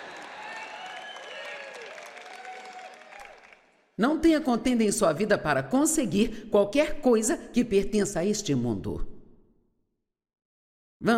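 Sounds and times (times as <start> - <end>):
audience applauding: 0.0 - 3.9
speech: 4.0 - 9.1.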